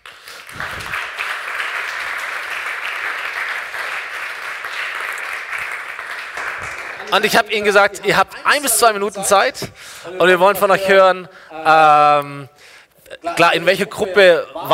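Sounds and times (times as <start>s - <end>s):
audience applause: 0.0s - 7.6s
speech: 7.1s - 12.5s, 13.2s - 14.7s.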